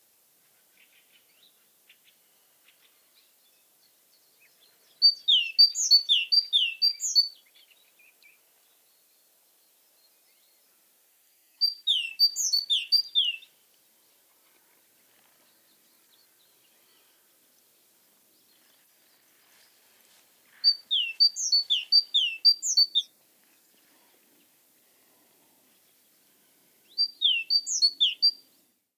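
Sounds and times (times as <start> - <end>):
great tit calling: 11.6 - 13.5, 20.6 - 23.1, 26.9 - 28.4.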